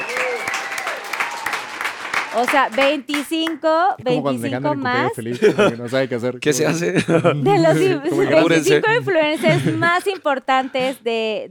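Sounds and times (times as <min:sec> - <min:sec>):
applause: 0:00.0 - 0:03.8
speech: 0:02.3 - 0:11.5
laughter: 0:05.0 - 0:11.0.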